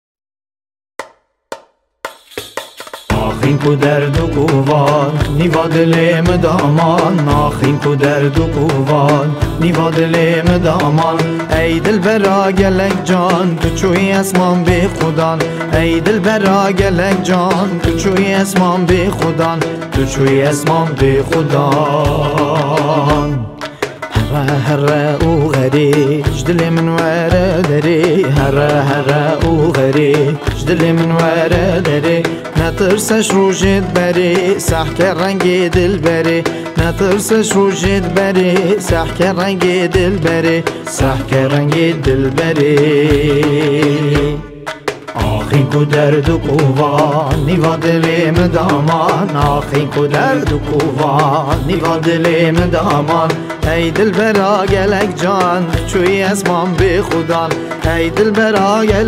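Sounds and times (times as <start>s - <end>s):
Kurdish six-eight mashup: 1.0s - 59.0s.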